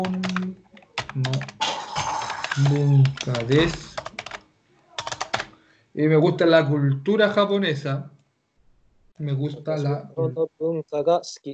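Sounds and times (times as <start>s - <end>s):
speech: 0.0s - 0.3s, 2.6s - 3.9s, 6.0s - 8.1s, 9.2s - 11.5s
typing on a computer keyboard: 0.0s - 1.6s, 2.2s - 4.4s, 5.0s - 5.6s.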